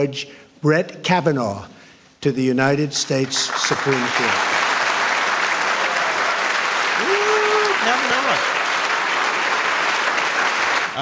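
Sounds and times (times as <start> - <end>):
speech: 0.0 - 4.6
large crowd applauding: 3.0 - 11.0
brief vocal shout or cheer: 7.0 - 8.3.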